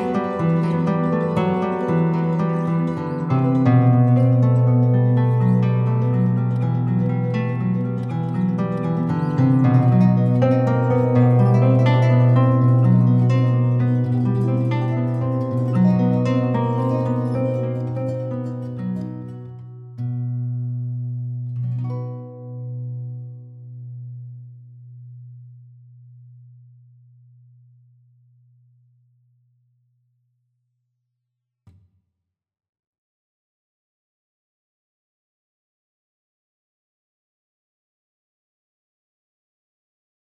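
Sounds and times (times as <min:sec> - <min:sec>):
guitar: 0:00.0 - 0:27.6.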